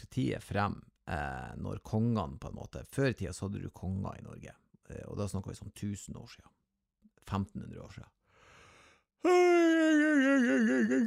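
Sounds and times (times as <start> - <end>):
speech: 0.0 - 6.6, 7.2 - 8.2, 9.2 - 11.0
person yawning: 9.2 - 11.0.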